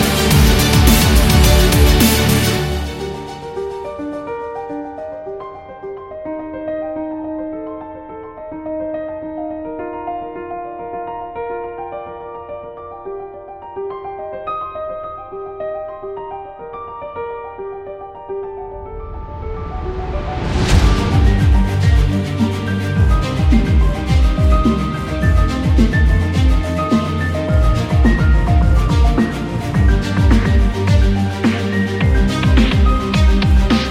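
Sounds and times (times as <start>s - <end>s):
epic dubstep music: 0.0s - 3.8s, 20.4s - 33.8s.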